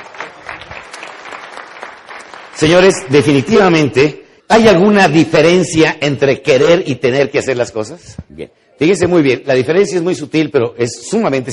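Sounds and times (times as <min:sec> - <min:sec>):
audience applauding: 0:00.0 - 0:03.3
speech: 0:02.6 - 0:11.5.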